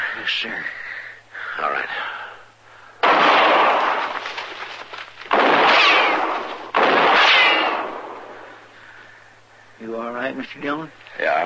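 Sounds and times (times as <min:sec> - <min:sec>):
speech: 0:00.3 - 0:00.8, 0:01.6 - 0:02.2, 0:10.2 - 0:11.4
gunshots in a radio drama: 0:03.0 - 0:04.6, 0:05.3 - 0:08.6.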